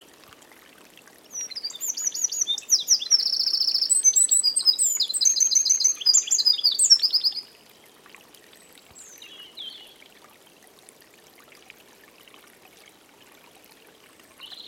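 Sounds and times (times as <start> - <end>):
Eurasian wren singing: 1.4 - 7.5.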